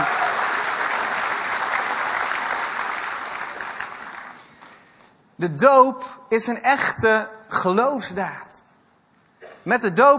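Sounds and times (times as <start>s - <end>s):
audience applause: 0.0s - 4.8s
speech: 5.4s - 8.5s, 9.6s - 10.1s.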